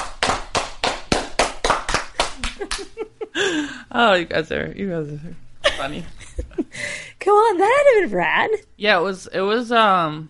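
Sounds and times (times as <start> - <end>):
slow clap speeding up: 0.0 - 3.0
speech: 3.9 - 10.2.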